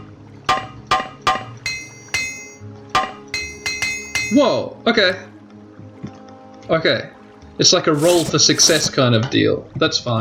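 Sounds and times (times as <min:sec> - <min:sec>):
video game repair hammer clinking against metal: 0:00.5 - 0:04.6
speech: 0:04.3 - 0:05.3, 0:06.7 - 0:10.1.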